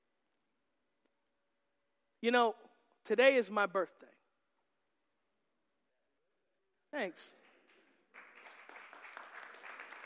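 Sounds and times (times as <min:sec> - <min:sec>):
speech: 0:02.2 - 0:04.2, 0:06.9 - 0:07.4
audience clapping: 0:07.4 - 0:10.0.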